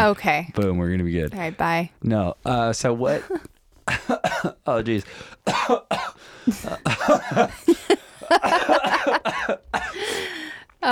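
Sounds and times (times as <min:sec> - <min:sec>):
speech: 0:00.0 - 0:10.8
person coughing fit: 0:03.9 - 0:04.6, 0:05.5 - 0:07.7, 0:08.4 - 0:10.1
laughter: 0:06.5 - 0:09.9.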